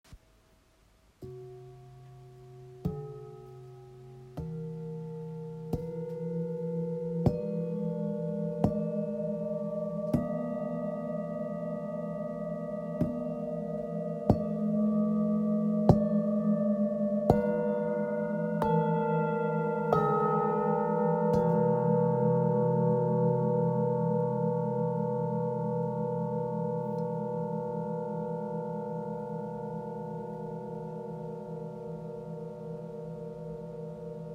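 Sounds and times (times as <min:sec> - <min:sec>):
set of therapeutic Tibetan singing bowls: 0:01.2 - 0:34.3.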